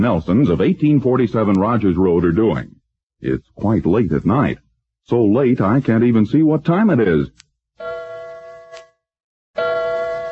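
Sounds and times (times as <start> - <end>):
speech: 0.0 - 7.4
grandfather clock chiming: 7.8 - 8.8, 9.6 - 10.3.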